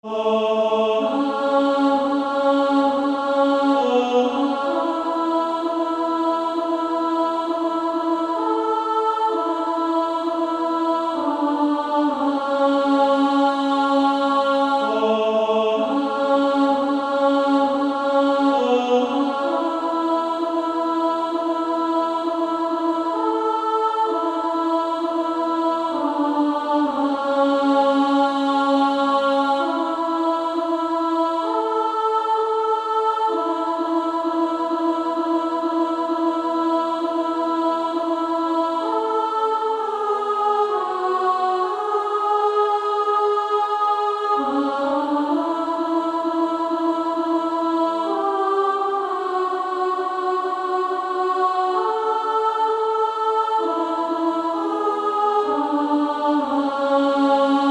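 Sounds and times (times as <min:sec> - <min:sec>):
female choir singing A1: 0:00.0 - 0:57.6.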